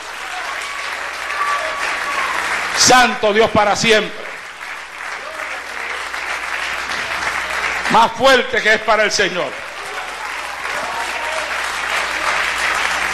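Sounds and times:
audience applause: 0.0 - 13.1
speech: 2.8 - 4.2, 7.9 - 9.6.

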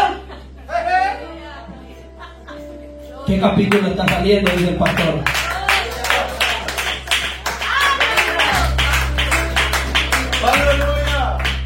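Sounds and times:
speech: 3.3 - 5.4
audience applause: 3.7 - 11.6.

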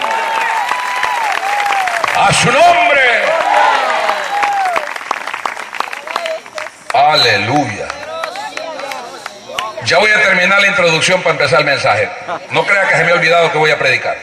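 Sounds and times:
loud applause from audience: 0.0 - 10.2
speech: 2.2 - 3.9, 7.1 - 7.9, 9.9 - 14.2.

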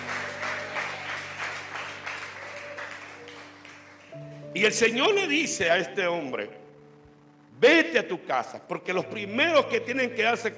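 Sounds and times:
audience clapping hands: 0.0 - 4.4
speech: 4.6 - 6.6, 7.6 - 10.5.

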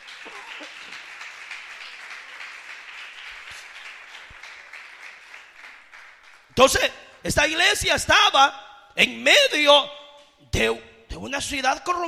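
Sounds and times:
audience applause: 0.0 - 6.6
speech: 6.6 - 12.0.

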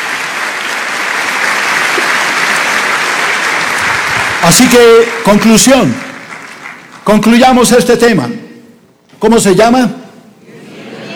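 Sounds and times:
audience applause: 0.0 - 7.1
speech: 4.5 - 6.1, 7.1 - 8.4, 9.2 - 10.0.

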